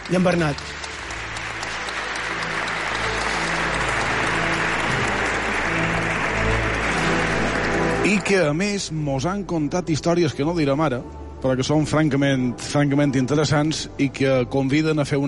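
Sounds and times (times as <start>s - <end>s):
audience applause: 0.0s - 8.6s
speech: 0.1s - 0.8s, 8.1s - 15.2s.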